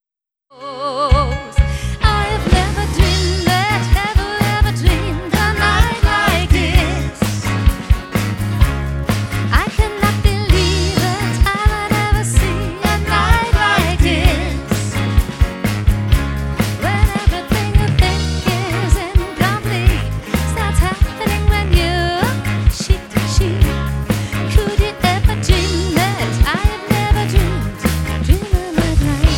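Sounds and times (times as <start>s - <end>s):
cha cha music: 1.3s - 29.3s.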